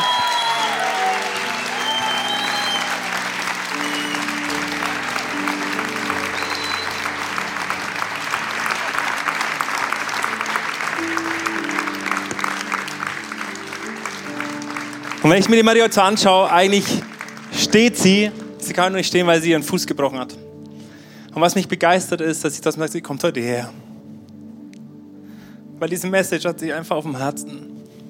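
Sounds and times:
large audience applause: 0.0s - 19.5s
sustained musical tones: 0.0s - 20.9s
speech: 15.4s - 20.4s, 21.4s - 23.9s, 25.8s - 27.7s.

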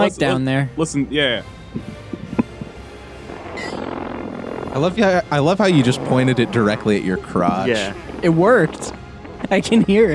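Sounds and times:
speech: 0.0s - 2.0s, 4.7s - 10.1s
bare skin squeaking on leather chair: 1.8s - 9.7s.

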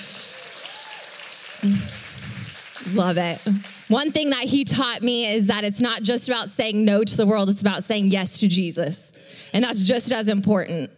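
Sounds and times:
audience round of applause: 0.0s - 3.9s
speech: 1.6s - 2.2s, 2.9s - 10.9s.

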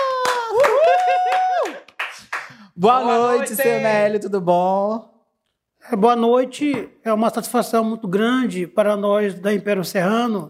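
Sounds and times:
audience applause: 0.0s - 2.6s
speech: 2.8s - 5.1s, 5.9s - 10.4s.

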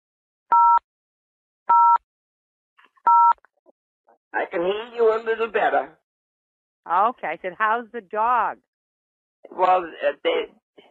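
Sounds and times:
telephone keypad button tones: 1.7s - 2.0s
speech: 4.3s - 6.0s, 6.8s - 8.7s, 9.4s - 10.8s.

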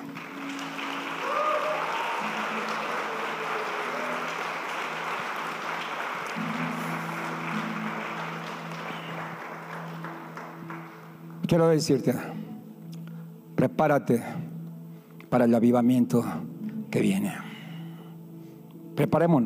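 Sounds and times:
crowd clapping: 0.0s - 11.6s
speech: 11.5s - 12.4s, 13.8s - 14.5s, 15.3s - 17.4s, 19.0s - 19.4s.

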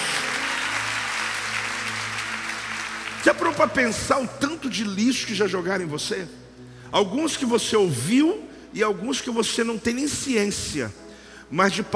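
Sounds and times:
audience cheering: 0.0s - 2.8s
large audience applause: 0.0s - 3.9s
speech: 3.2s - 11.9s.

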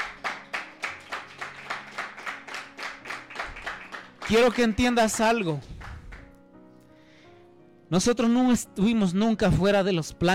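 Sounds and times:
audience clapping in steady rhythm: 0.0s - 6.4s
speech: 4.3s - 5.7s, 7.9s - 10.3s.

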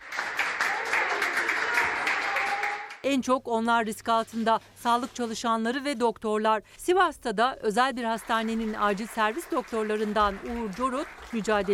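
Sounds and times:
crowd applauding a discharged nurse: 0.0s - 3.0s, 8.2s - 11.7s
speech: 3.0s - 11.7s.

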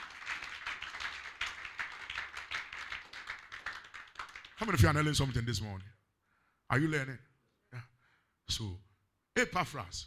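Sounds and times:
audience clapping: 0.0s - 5.1s
speech: 4.6s - 6.0s, 6.7s - 7.9s, 8.5s - 10.0s.

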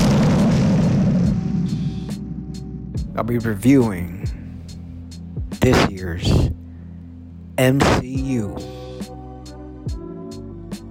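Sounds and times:
bomb drop sound effect: 0.0s - 4.5s
speech: 3.2s - 4.4s, 5.6s - 6.6s, 7.6s - 8.8s.

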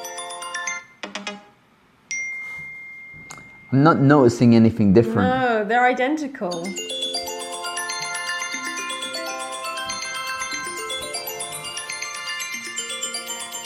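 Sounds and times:
phone ringtones played for comparison: 0.0s - 1.5s, 6.5s - 13.6s
speech: 3.7s - 6.9s.

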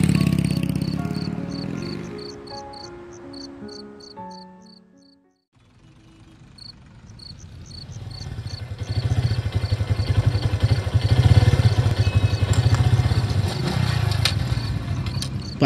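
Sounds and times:
motorbike engine starting and running: 0.0s - 3.5s, 6.6s - 15.6s.

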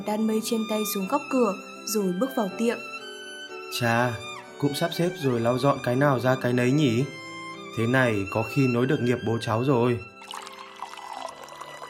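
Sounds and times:
speech: 0.0s - 3.0s, 3.7s - 7.2s, 7.8s - 10.4s
water pouring into a cup: 10.1s - 11.8s.

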